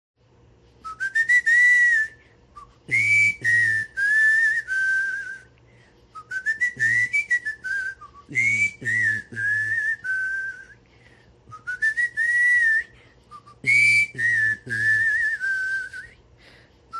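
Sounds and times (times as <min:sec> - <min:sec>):
whistling: 0:00.8 - 0:05.5, 0:06.1 - 0:16.9.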